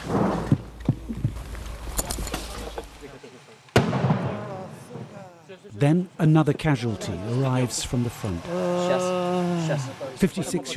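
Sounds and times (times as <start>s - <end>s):
incoming Russian artillery fire blast on the Ukraine war frontline: 0.0s - 0.7s, 3.8s - 5.2s
speech: 5.8s - 10.7s.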